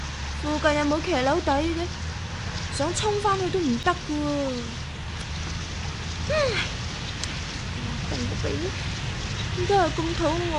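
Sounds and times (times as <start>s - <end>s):
steady rain: 0.0s - 10.5s
speech: 0.4s - 2.0s, 2.8s - 4.8s, 6.3s - 6.8s, 8.1s - 8.9s, 9.6s - 10.5s.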